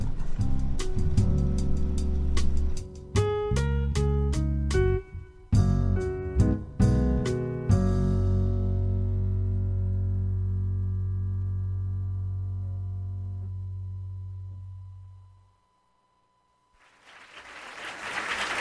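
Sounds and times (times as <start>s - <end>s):
jazz music: 0.1s - 13.5s.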